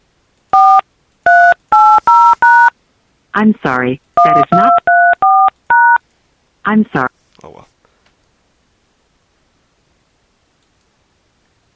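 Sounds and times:
telephone keypad tones entering a voicemail password: 0:00.6 - 0:02.7, 0:04.2 - 0:06.0
speech: 0:03.4 - 0:04.6, 0:06.7 - 0:07.1.

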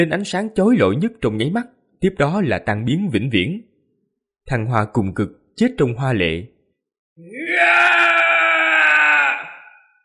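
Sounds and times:
speech: 0:00.0 - 0:03.7, 0:04.5 - 0:06.5, 0:07.2 - 0:08.1
man screaming loudly: 0:07.2 - 0:10.0.

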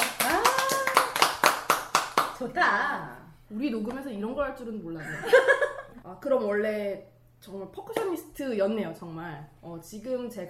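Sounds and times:
person whooping: 0:00.0 - 0:01.2
small audience clapping: 0:00.0 - 0:02.5
speech: 0:02.4 - 0:10.4
laughter: 0:05.0 - 0:06.0.

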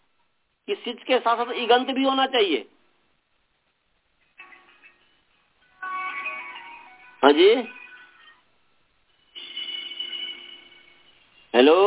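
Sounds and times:
speech: 0:00.7 - 0:02.8, 0:07.3 - 0:07.8, 0:11.6 - 0:11.8
mobile phone ringing during a lecture: 0:04.4 - 0:08.4, 0:09.1 - 0:11.5.

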